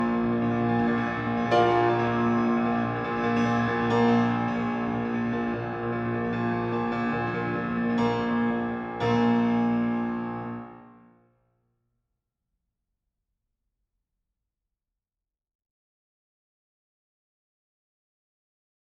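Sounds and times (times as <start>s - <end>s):
piano piece: 0.0s - 11.1s.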